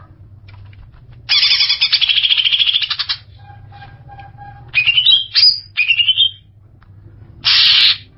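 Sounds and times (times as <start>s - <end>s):
Greater Green Leafbird singing harsh pulsed notes: 1.3s - 6.5s.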